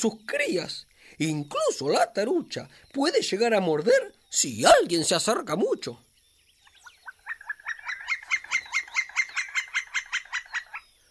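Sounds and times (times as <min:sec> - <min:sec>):
speech: 0:00.0 - 0:06.1
carpintero real woodpecker calling: 0:00.0 - 0:11.0.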